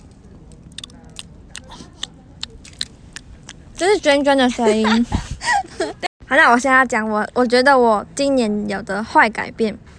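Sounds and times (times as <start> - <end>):
person biting and chewing mochi: 0.5 - 3.7
speech: 3.8 - 5.2, 6.3 - 9.9.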